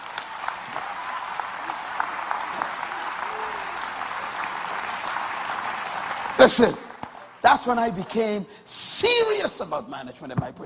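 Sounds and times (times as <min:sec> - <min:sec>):
audience clapping: 0:00.0 - 0:08.4
speech: 0:06.4 - 0:06.8, 0:07.4 - 0:10.6.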